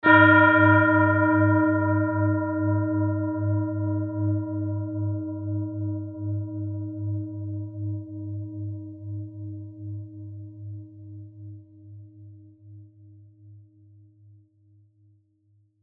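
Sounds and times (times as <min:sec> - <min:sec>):
Tibetan singing bowl ringing in G sharp: 0:00.0 - 0:07.9.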